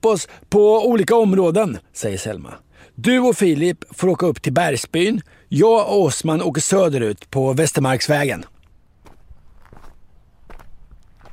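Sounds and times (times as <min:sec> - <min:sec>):
speech: 0:00.0 - 0:08.5
soft crunching footsteps walking toward a car: 0:08.3 - 0:11.3.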